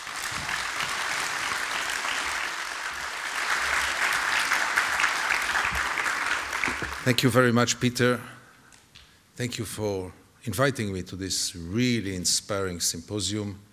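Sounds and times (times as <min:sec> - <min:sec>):
audience at a writers' and artists' symposium applauding a guest speaker: 0:00.0 - 0:07.3
speech: 0:07.1 - 0:08.4, 0:09.4 - 0:13.7.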